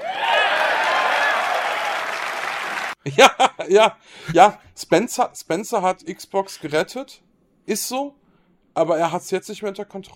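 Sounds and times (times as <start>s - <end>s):
audience applause: 0.0s - 3.0s
speech: 3.1s - 8.2s, 8.8s - 10.1s.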